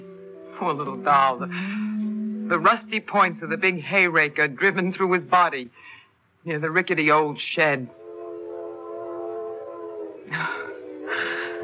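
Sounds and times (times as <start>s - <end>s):
train whistle: 0.0s - 3.7s, 7.9s - 11.6s
speech: 0.6s - 8.0s.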